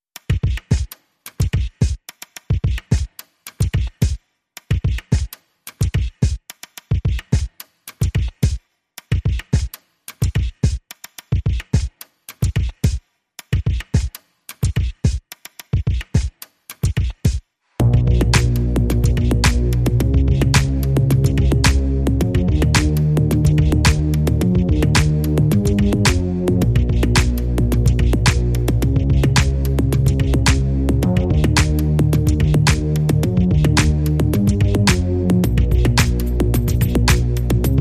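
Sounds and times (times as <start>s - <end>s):
drums: 0.2s - 37.7s
bass: 17.8s - 37.7s.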